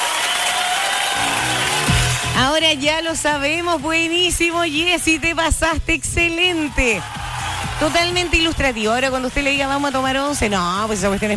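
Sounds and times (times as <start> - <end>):
group applause: 0.0 - 2.9, 6.5 - 11.3
speech: 2.5 - 7.2, 7.8 - 11.3.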